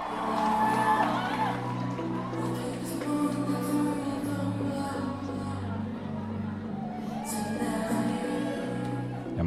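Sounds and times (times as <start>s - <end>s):
crowd cheering: 0.0s - 4.4s, 5.4s - 9.4s.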